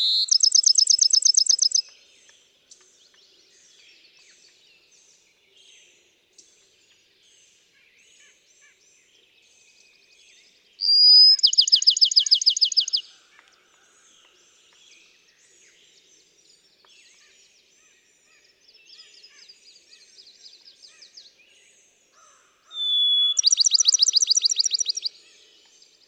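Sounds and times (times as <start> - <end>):
Bachman's sparrow trilling: 0.0 - 1.8, 10.8 - 13.0, 22.7 - 25.1
other birds chirping faintly: 0.0 - 1.8, 10.8 - 13.0, 22.7 - 25.1.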